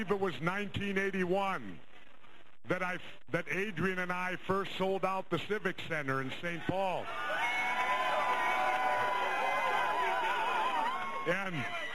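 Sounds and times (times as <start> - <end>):
speech: 0.0 - 1.9, 2.6 - 7.4, 11.2 - 11.8
crowd cheering: 7.0 - 11.9.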